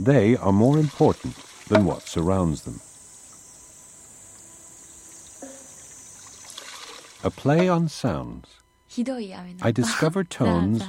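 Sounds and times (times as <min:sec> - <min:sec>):
speech: 0:00.0 - 0:02.9, 0:07.2 - 0:10.8
water trickling in a shishiodoshi fountain: 0:00.0 - 0:07.7.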